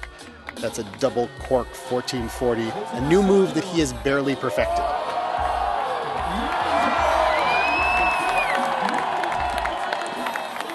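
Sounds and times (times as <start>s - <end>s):
speech: 0.6s - 5.1s
Russian Olympic crowd reacting in amazement: 4.4s - 10.7s.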